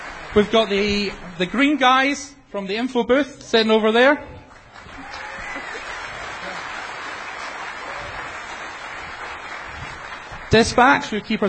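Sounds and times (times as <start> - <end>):
audience clapping: 0.0 - 1.3, 4.5 - 11.4
speech: 0.4 - 4.4, 10.5 - 11.4.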